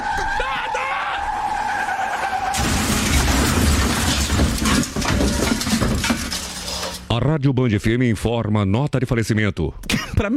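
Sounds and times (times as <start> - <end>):
car skidding sound effect: 0.0 - 5.4
car crashing sound effect: 0.0 - 7.1
speech: 7.1 - 10.3.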